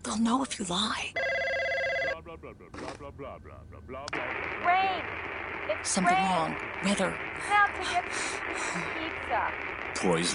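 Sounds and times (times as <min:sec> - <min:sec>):
speech: 0:00.1 - 0:01.2, 0:02.3 - 0:10.3
telephone ringing: 0:01.2 - 0:02.4.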